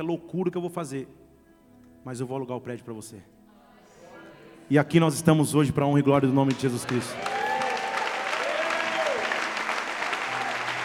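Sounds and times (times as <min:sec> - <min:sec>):
speech: 0:00.0 - 0:01.2, 0:02.0 - 0:03.4, 0:04.7 - 0:07.3
audience applause: 0:06.5 - 0:10.8
faint vocal tones and cheers: 0:07.0 - 0:10.8.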